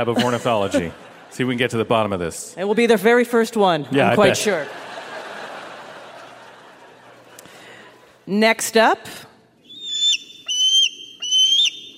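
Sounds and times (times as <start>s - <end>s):
laughter: 0.0s - 1.9s, 4.1s - 7.5s
speech: 0.0s - 4.9s, 8.3s - 9.3s
bald eagle whistling calls: 9.6s - 11.9s.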